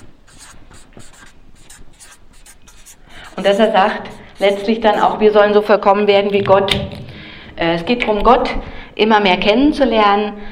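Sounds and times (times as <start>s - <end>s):
pen or marker strokes scratching on a board or paper: 0.0s - 5.3s
speech: 3.4s - 7.0s, 7.6s - 10.4s.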